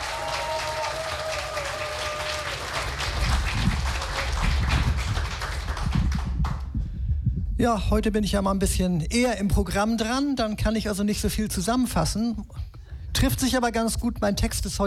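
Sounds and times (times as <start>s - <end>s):
audience applause: 0.0s - 6.6s
speech: 7.6s - 12.6s, 13.2s - 14.8s.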